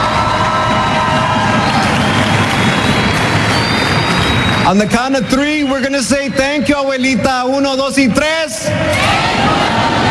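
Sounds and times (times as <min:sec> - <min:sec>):
audience applause: 0:00.0 - 0:05.2
audience cheering: 0:00.0 - 0:06.5, 0:08.8 - 0:10.0
speech: 0:04.7 - 0:09.5.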